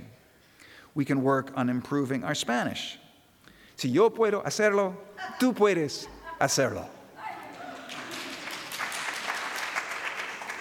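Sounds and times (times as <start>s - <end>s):
speech: 1.0s - 3.0s, 3.8s - 7.0s
audience applauding: 7.5s - 10.5s.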